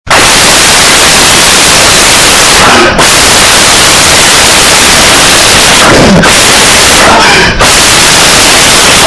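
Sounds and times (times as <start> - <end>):
ear-piercing noise: 0.1 - 9.0.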